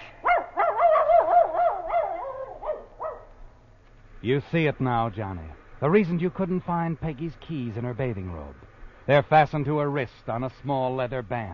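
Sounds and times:
small dog barking in high-pitched yips: 0.2s - 3.4s
speech: 4.2s - 11.5s.

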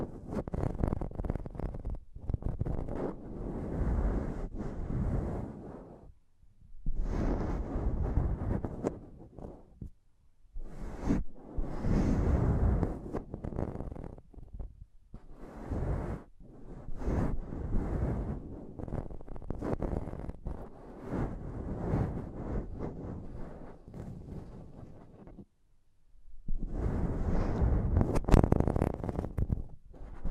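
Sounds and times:
intense microphone tapping and scratching: 0.0s - 6.1s, 6.8s - 10.0s, 10.6s - 25.5s, 26.5s - 30.2s.

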